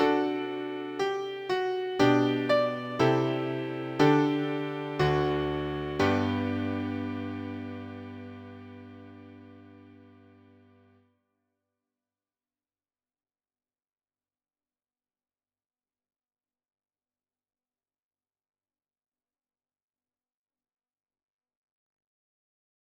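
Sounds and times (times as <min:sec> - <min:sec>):
largo piano piece: 0:00.0 - 0:10.7.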